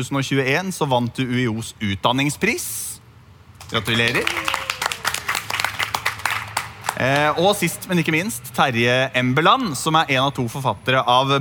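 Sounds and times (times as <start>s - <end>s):
speech: 0.0s - 3.0s, 3.7s - 4.5s, 7.0s - 11.3s
audience applause: 3.6s - 7.6s.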